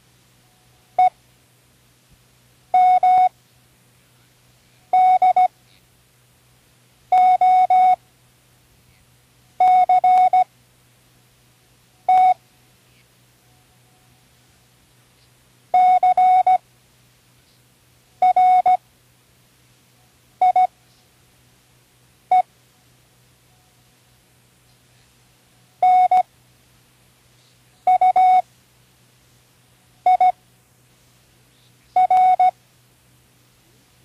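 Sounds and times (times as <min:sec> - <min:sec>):
morse code beeps: 0:02.8 - 0:03.3, 0:04.9 - 0:05.5, 0:07.1 - 0:08.0, 0:09.6 - 0:10.5, 0:12.1 - 0:12.4, 0:15.8 - 0:16.6, 0:18.2 - 0:18.8, 0:20.4 - 0:20.7, 0:25.8 - 0:26.3, 0:27.9 - 0:28.4, 0:30.0 - 0:30.4, 0:32.0 - 0:32.6.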